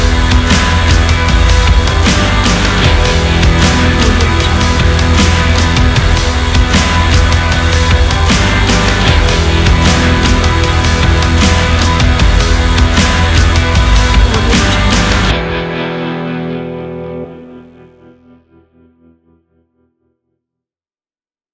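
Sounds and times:
western stomp rock trailer music: 0:00.0 - 0:16.8.

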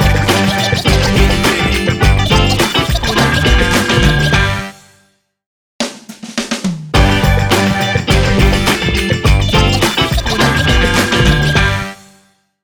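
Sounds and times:
hip hop funk beat logo: 0:00.0 - 0:04.6, 0:06.6 - 0:11.8.

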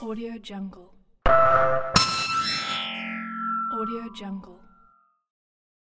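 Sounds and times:
glitch sound effects: 0:01.3 - 0:04.3.

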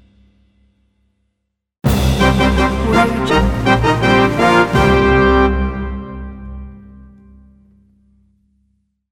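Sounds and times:
ancient fanfare logo: 0:01.9 - 0:07.1.

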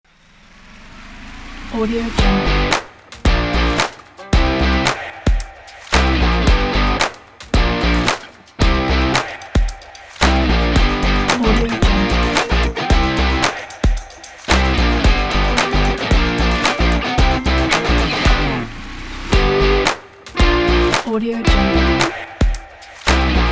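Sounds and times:
energetic indie rock music: 0:02.2 - 0:18.6, 0:19.3 - 0:23.5
clapping: 0:02.7 - 0:04.2, 0:04.8 - 0:08.6, 0:09.2 - 0:18.4, 0:19.8 - 0:21.2, 0:22.0 - 0:23.5.

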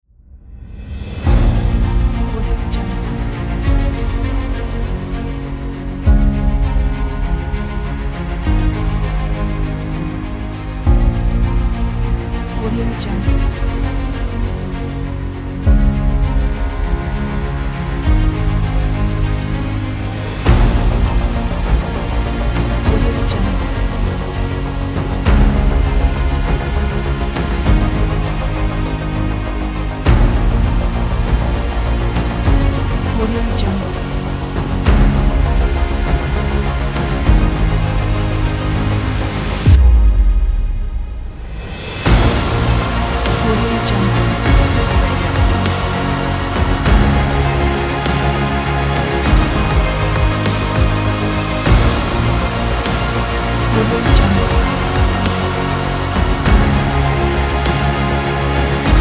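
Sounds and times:
heroic music: 0:00.3 - 0:59.0.

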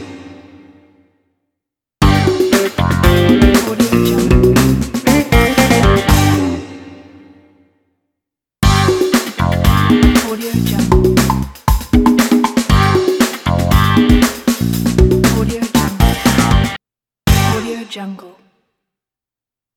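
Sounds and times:
upbeat funky logo music: 0:02.0 - 0:06.7, 0:08.6 - 0:17.7.

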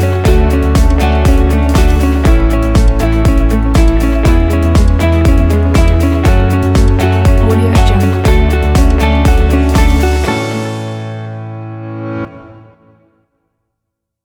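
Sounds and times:
upbeat motivational inspiring corporate music: 0:00.0 - 0:10.6.

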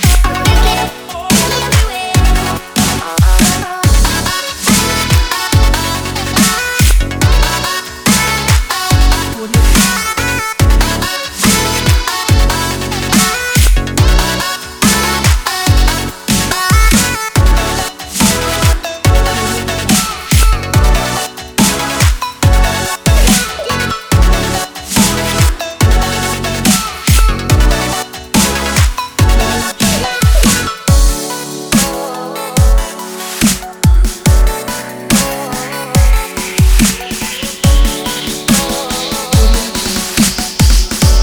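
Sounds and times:
summer future bass pop funk music: 0:00.0 - 0:41.2.

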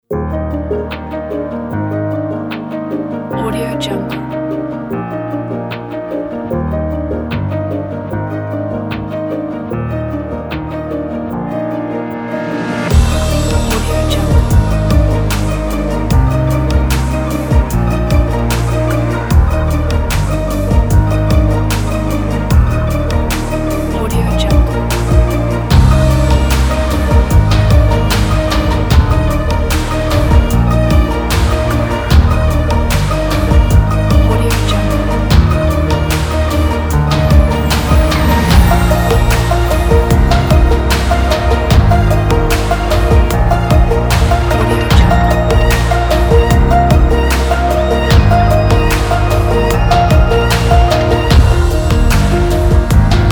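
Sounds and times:
powerful emotional music climax: 0:00.2 - 0:53.3.

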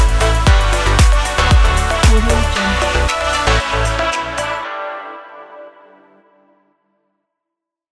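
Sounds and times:
energetic upbeat pop dance music: 0:00.0 - 0:04.7.

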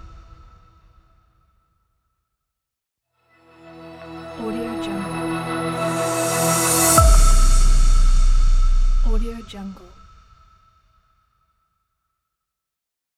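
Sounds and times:
logo reveal sting: 0:03.5 - 0:09.5.

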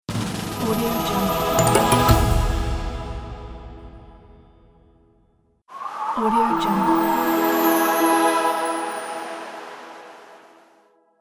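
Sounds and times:
winter choir singing: 0:00.7 - 0:03.4, 0:05.7 - 0:10.8.

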